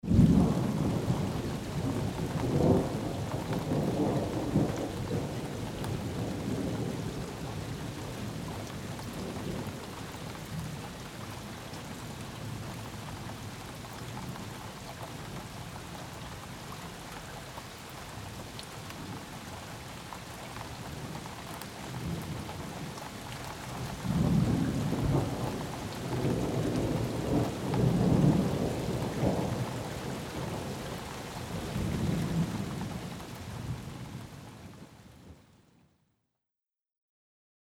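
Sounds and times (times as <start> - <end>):
thunder: 0.0 - 9.8, 23.7 - 34.3
rain: 0.0 - 35.6.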